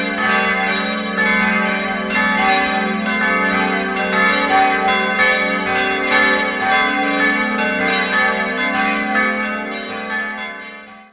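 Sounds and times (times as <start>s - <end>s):
church bells ringing: 0.0s - 11.1s.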